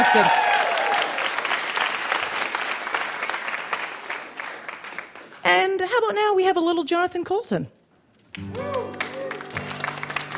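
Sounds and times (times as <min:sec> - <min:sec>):
audience applause: 0:00.0 - 0:05.4, 0:08.4 - 0:10.3
speech: 0:00.1 - 0:00.4, 0:05.4 - 0:07.8.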